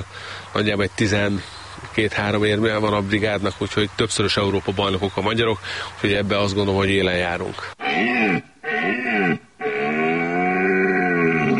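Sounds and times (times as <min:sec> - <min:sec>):
speech: 0:00.5 - 0:08.5
red deer stag bellowing during rut: 0:07.8 - 0:11.5.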